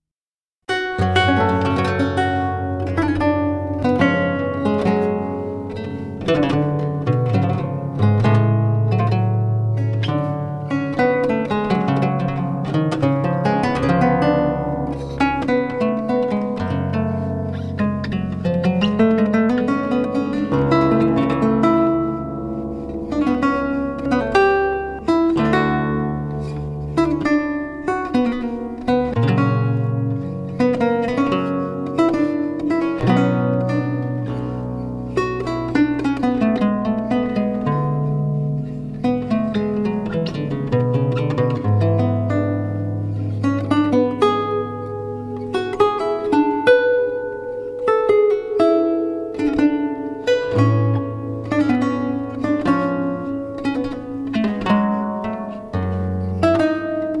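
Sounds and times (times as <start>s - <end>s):
lute piece in G minor: 0.7s - 57.1s.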